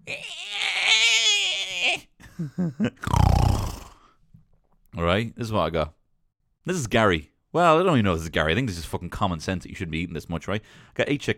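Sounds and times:
person imitating pig squeals and grunts: 0:00.0 - 0:02.1, 0:03.0 - 0:04.0
speech: 0:02.0 - 0:03.6, 0:05.0 - 0:06.0, 0:06.6 - 0:11.3.

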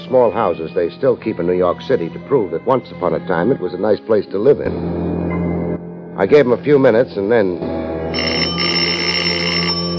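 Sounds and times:
speech: 0:00.1 - 0:05.0, 0:06.2 - 0:08.4
doorbell ringing: 0:08.2 - 0:09.9.

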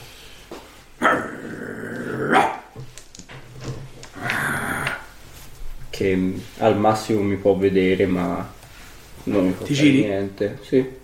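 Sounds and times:
dog growling: 0:01.0 - 0:02.8, 0:04.1 - 0:05.2
dog barking: 0:02.3 - 0:02.8
speech: 0:06.0 - 0:08.6, 0:09.2 - 0:11.0.

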